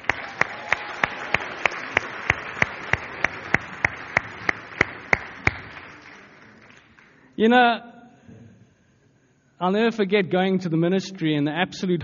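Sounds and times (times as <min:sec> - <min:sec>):
audience applause: 0:00.0 - 0:07.3
speech: 0:07.4 - 0:07.9, 0:09.6 - 0:12.0.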